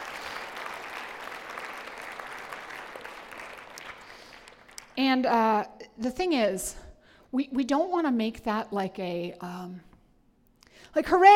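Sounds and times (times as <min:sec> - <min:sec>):
church congregation applauding its staff: 0:00.0 - 0:05.0
speech: 0:05.0 - 0:09.9, 0:10.9 - 0:11.3.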